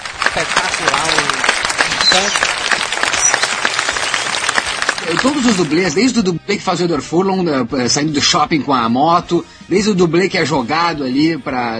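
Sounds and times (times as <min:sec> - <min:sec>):
applause for the film's stunt doubles: 0:00.0 - 0:06.3
speech: 0:02.2 - 0:02.5, 0:05.1 - 0:11.7.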